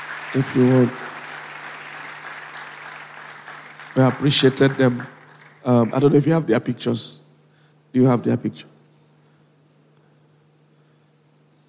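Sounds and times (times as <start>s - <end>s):
audience clapping applause: 0.0s - 6.3s
speech: 0.3s - 1.0s, 4.0s - 7.2s, 7.9s - 8.7s.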